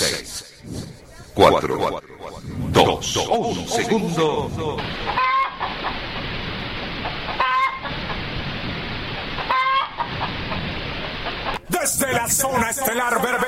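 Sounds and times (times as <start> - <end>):
hen clucking: 0.8 - 6.3, 7.0 - 8.4, 9.0 - 11.6
speech: 1.4 - 5.3, 12.0 - 13.4.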